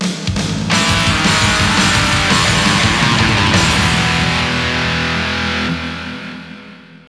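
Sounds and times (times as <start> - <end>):
strings in G sharp: 0.7 - 6.8.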